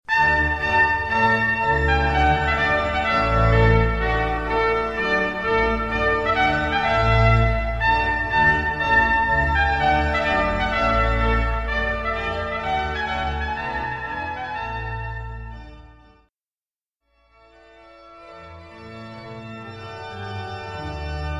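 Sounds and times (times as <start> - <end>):
wedding music excerpts: 0.1 - 16.1.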